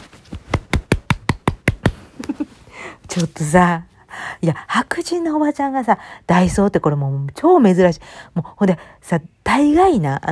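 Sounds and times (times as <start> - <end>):
hand clapping: 0.5 - 2.4
speech: 3.2 - 10.2.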